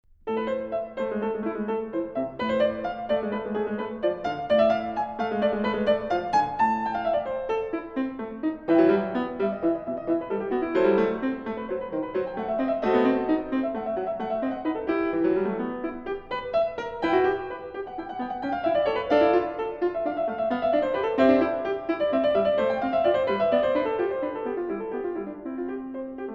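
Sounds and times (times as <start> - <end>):
keyboard prelude in A minor: 0.8 - 26.3.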